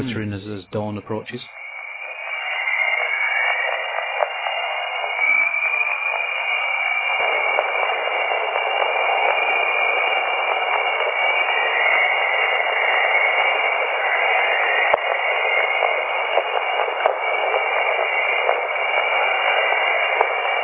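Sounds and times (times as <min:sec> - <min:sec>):
speech: 0:00.0 - 0:01.6
Jupiter radio emission converted to sound: 0:00.0 - 0:20.6.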